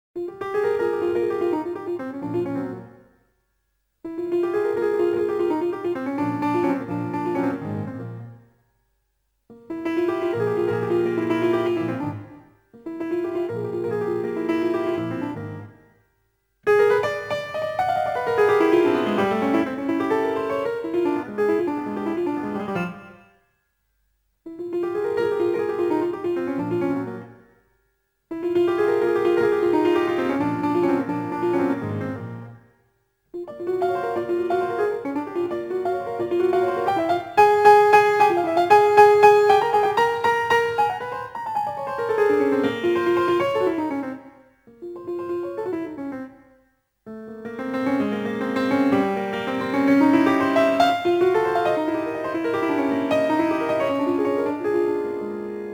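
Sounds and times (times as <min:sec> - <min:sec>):
piano music: 0:00.2 - 0:03.0, 0:04.1 - 0:08.3, 0:09.6 - 0:15.8, 0:16.7 - 0:23.2, 0:24.6 - 0:27.4, 0:28.4 - 0:32.6, 0:33.4 - 0:46.3, 0:47.3 - 0:55.7.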